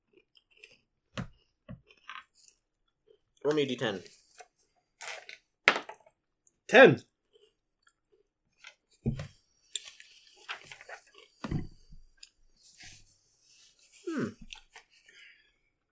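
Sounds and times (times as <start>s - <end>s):
chewing a salty Slim Jim meat stick: 0.1s - 3.4s, 7.2s - 9.0s, 9.7s - 11.4s
speech: 3.4s - 4.2s, 6.7s - 7.1s.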